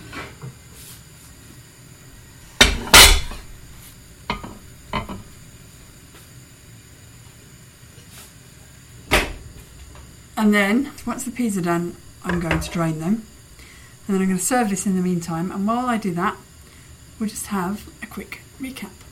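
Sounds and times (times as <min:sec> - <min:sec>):
plates clattering into a hot oven: 0:02.6 - 0:03.5, 0:12.2 - 0:13.2
speech: 0:10.4 - 0:13.3, 0:14.1 - 0:16.5, 0:17.2 - 0:19.0.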